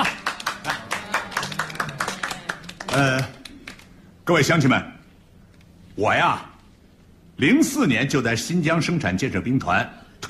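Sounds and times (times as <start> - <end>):
audience clapping to welcome a company chairman at a village gathering: 0.0 - 4.1
speech: 2.9 - 3.4, 4.3 - 4.9, 6.0 - 6.5, 7.4 - 10.2.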